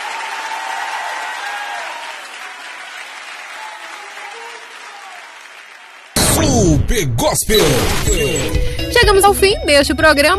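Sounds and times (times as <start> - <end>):
audience applauding: 0.0 - 6.6
speech: 6.7 - 10.3.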